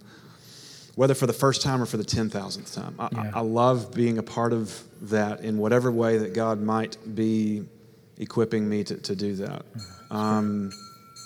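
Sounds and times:
speech: 1.0 - 10.9
bell ringing: 9.8 - 11.2.

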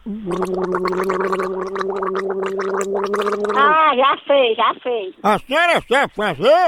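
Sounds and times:
person gargling liquid: 0.0 - 3.8
speech: 0.2 - 6.6.

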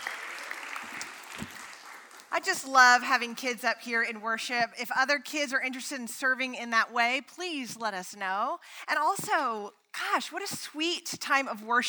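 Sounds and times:
crowd applause: 0.0 - 2.3
speech: 2.4 - 11.8.

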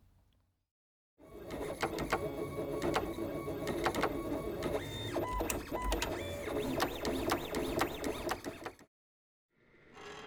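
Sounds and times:
vintage Roland pen plotter drawing in a university office: 1.2 - 8.9.

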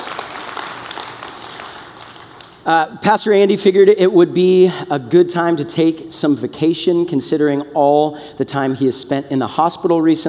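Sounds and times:
audience applause: 0.0 - 2.6
speech: 2.6 - 10.2.

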